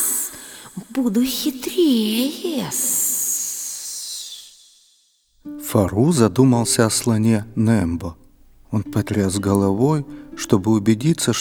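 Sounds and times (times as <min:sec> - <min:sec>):
speech: 0:01.0 - 0:02.9, 0:05.7 - 0:11.3
snake hissing in a spoken story: 0:02.5 - 0:05.1.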